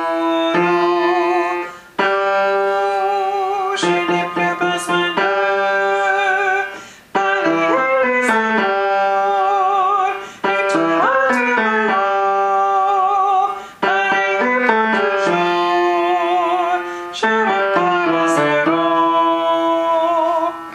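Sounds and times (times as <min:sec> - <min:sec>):
tenors singing: 0:00.0 - 0:20.7.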